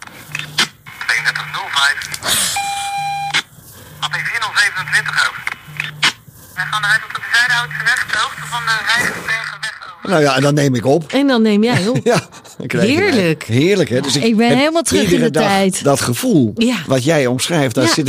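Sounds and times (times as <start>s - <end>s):
speech: 1.3s - 3.0s, 4.0s - 5.8s, 6.6s - 18.0s
police radio band ringtone: 2.5s - 3.4s.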